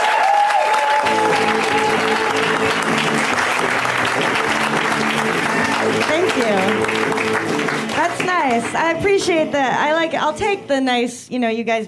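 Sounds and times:
crowd applause for a stand-up comedian: 0.0s - 8.8s
speech: 8.5s - 11.8s.

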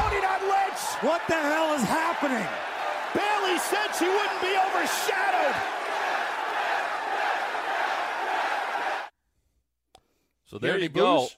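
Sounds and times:
wrestling arena crowd cheering: 0.0s - 9.1s
speech: 1.0s - 5.8s, 10.5s - 11.3s.

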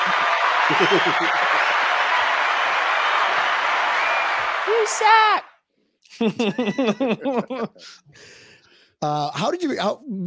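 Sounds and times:
laughter: 0.0s - 1.9s, 6.1s - 8.0s
round of applause: 0.0s - 5.5s
speech: 0.1s - 1.8s, 4.7s - 5.5s, 6.2s - 8.4s, 9.0s - 10.2s.

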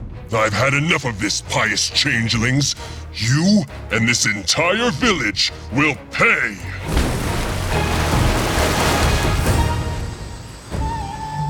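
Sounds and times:
speech: 0.3s - 7.0s
loud splash of something leaping into river: 6.9s - 10.3s.

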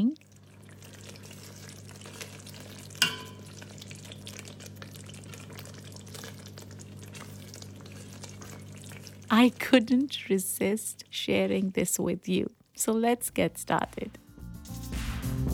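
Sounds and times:
Indo-Sichuan chili sauce crackling in a pan: 0.0s - 9.3s
speech: 9.4s - 14.2s.

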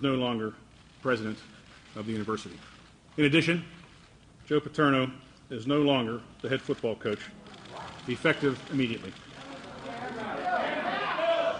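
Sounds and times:
speech: 0.0s - 3.8s, 4.5s - 7.4s, 8.0s - 9.2s
shocked crowd of reporters murmuring and exclaiming: 9.3s - 11.5s.

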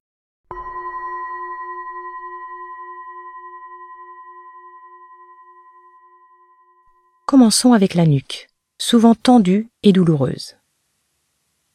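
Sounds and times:
gong strike: 0.5s - 6.8s
speech: 7.3s - 10.6s.

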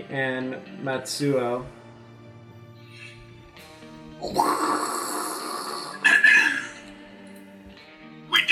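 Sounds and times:
speech: 0.0s - 1.8s, 4.2s - 4.9s
giant monster roar sound effect: 4.2s - 6.8s.

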